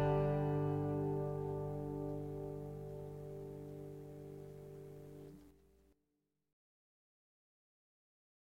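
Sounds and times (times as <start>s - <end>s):
banjo playing: 0.0s - 5.0s.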